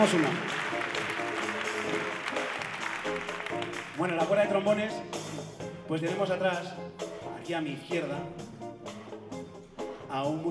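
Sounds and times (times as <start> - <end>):
speech: 0.0 - 0.6, 4.0 - 5.2, 5.9 - 8.6, 10.1 - 10.4
audience applause in a theatre at a band concert: 0.0 - 4.4.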